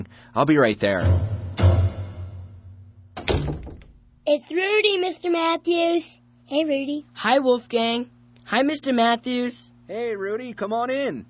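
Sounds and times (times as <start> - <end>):
speech: 0.4 - 1.3, 4.3 - 11.2
dull thump: 1.0 - 4.1
sharp knocking at the door: 3.2 - 4.0.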